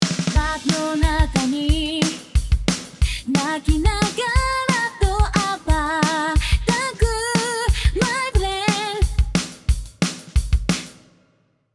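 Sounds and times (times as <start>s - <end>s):
drum: 0.0s - 11.2s.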